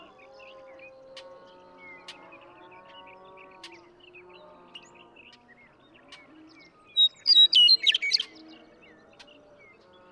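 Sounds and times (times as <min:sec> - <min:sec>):
Western meadowlark song: 0:06.6 - 0:08.5.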